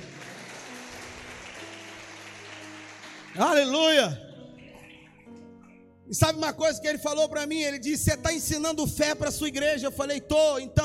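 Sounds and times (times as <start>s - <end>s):
audience applauding: 0.0s - 4.2s
speech: 3.4s - 4.2s, 6.1s - 10.8s.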